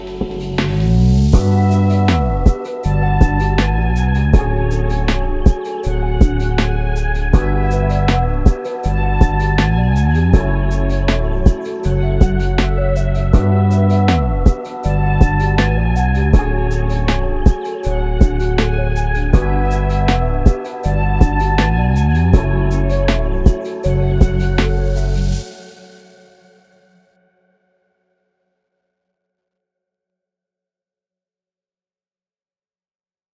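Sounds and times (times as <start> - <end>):
lofi music: 0.0 - 26.1.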